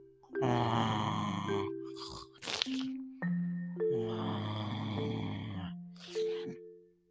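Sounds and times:
person imitating loud snoring: 0.3 - 2.9, 3.8 - 6.5.

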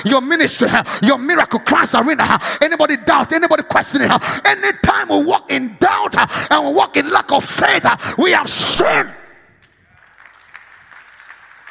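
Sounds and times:
speech: 0.0 - 9.2
audience clapping: 9.6 - 11.7.

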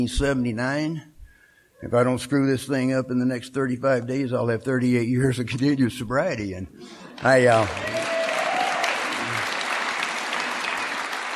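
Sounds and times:
speech: 0.0 - 1.1, 1.8 - 8.0
audience applause at a recovery meeting: 7.0 - 11.3.

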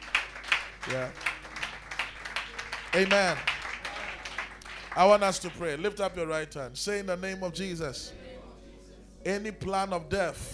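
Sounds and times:
audience clapping hands: 0.0 - 6.4
speech: 0.9 - 1.2, 2.9 - 3.5, 5.0 - 8.2, 9.2 - 10.5.

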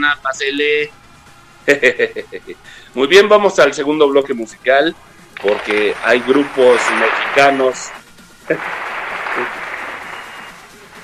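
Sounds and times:
speech: 0.0 - 1.0, 1.6 - 9.6
laughter: 1.7 - 2.6, 8.5 - 10.2
audience applauding and cheering: 5.4 - 11.0.

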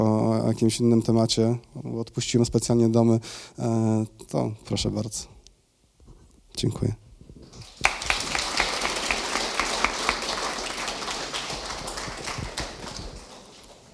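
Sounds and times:
speech: 0.5 - 5.4, 6.6 - 7.0
audience applause: 7.6 - 13.9.

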